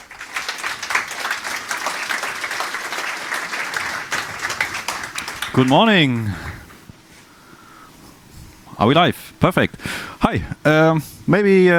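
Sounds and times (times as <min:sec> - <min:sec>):
audience applause: 0:00.0 - 0:06.7
speech: 0:05.6 - 0:06.5, 0:08.8 - 0:11.7.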